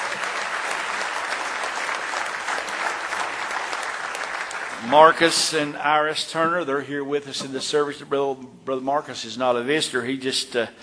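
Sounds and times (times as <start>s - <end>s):
congregation applauding during a church service: 0.0s - 6.1s
speech: 4.8s - 10.8s.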